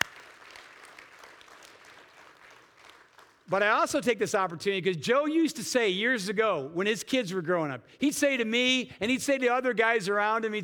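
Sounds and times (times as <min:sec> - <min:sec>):
crowd applause: 0:00.0 - 0:03.4
speech: 0:03.5 - 0:10.6.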